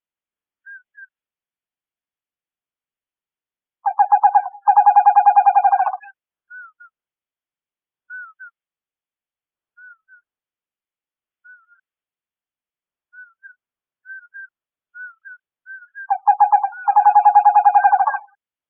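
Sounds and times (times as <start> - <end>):
western screech owl hooting: 3.8 - 6.1, 16.1 - 18.3.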